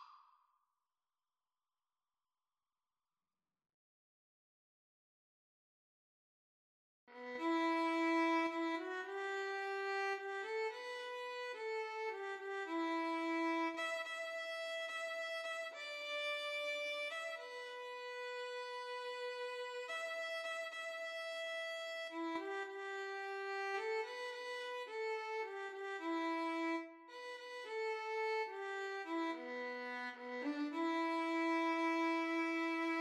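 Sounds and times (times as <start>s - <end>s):
violin and cello duet: 7.1s - 32.9s.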